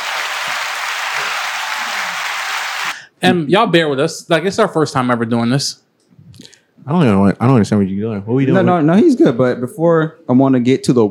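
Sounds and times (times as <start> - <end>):
audience applause: 0.0 - 3.0
speech: 3.2 - 11.0.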